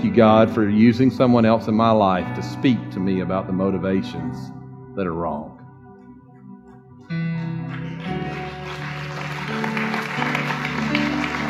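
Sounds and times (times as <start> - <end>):
speech: 0.0 - 5.6
audience clapping: 6.7 - 11.4.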